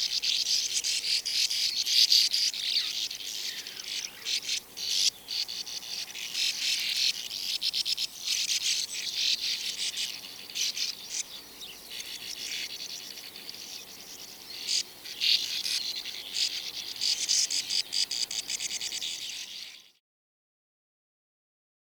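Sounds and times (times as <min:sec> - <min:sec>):
sand martin calling: 0:00.0 - 0:19.9.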